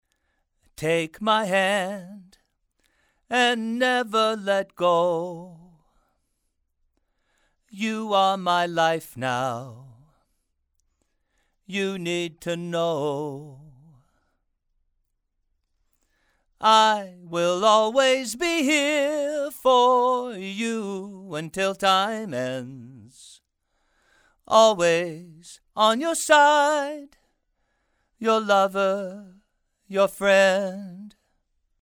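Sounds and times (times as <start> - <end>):
male vocals: 0.7 - 2.5, 3.2 - 5.9, 7.7 - 10.2, 11.6 - 14.2, 16.6 - 23.4, 24.5 - 27.2, 28.2 - 31.2.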